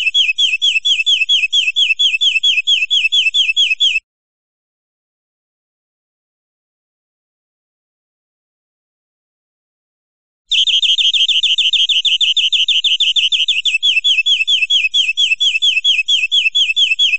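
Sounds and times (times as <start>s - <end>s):
European greenfinch buzzy trill: 0.0s - 4.0s, 10.5s - 17.1s.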